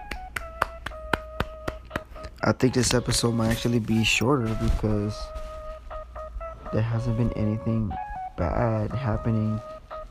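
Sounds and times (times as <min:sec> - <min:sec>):
sharp hand claps: 0:00.0 - 0:03.0
speech: 0:02.4 - 0:05.4, 0:06.7 - 0:09.8.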